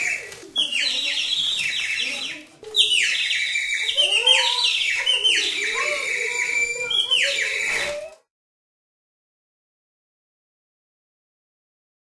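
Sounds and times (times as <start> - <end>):
nightingale singing: 0.0 - 7.9.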